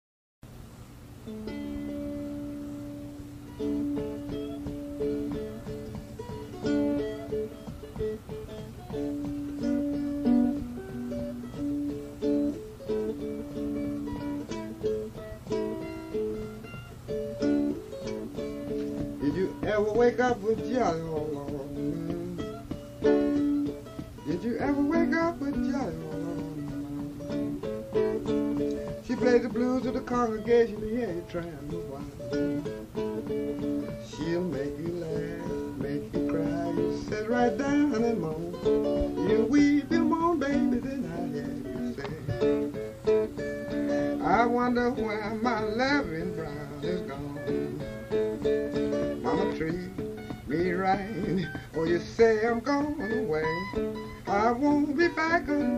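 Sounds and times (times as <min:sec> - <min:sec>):
blues music: 0:00.6 - 0:55.7.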